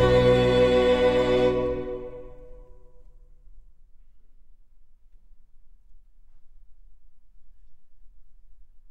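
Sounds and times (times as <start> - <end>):
baroque dance arranged for electric bass and strings: 0.0 - 2.5.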